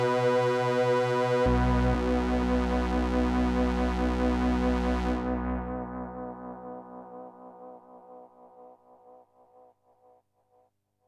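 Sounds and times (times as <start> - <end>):
Moog synthesizer with delay effect: 0.0 - 8.7.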